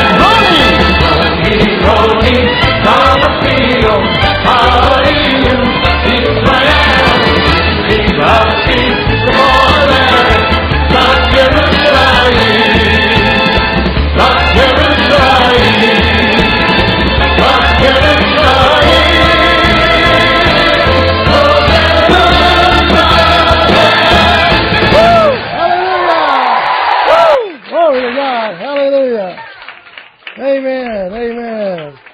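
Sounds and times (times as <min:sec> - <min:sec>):
audience shouting and cheering: 0:00.0 - 0:32.1
individual whoops and yells: 0:24.9 - 0:27.6.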